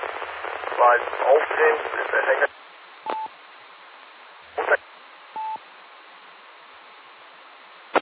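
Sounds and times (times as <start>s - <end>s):
weak garbled amateur radio transmission: 0.1s - 3.2s, 4.6s - 4.8s
short steady beeps: 3.0s - 3.3s, 5.4s - 5.6s.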